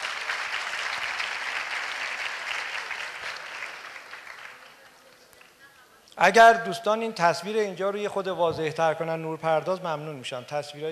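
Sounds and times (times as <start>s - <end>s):
audience applause: 0.0s - 5.4s
speech: 6.2s - 10.8s.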